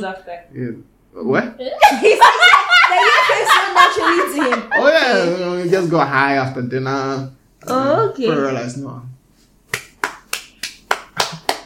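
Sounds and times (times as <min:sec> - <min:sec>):
speech: 0:00.0 - 0:09.1
laughter: 0:01.8 - 0:05.5
hand clapping: 0:09.7 - 0:11.6.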